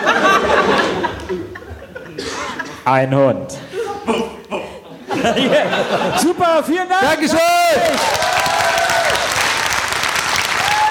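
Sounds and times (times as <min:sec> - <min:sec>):
laughter: 0:00.0 - 0:02.8, 0:03.6 - 0:06.7
speech: 0:02.9 - 0:04.2, 0:05.2 - 0:08.3
applause: 0:07.8 - 0:10.8.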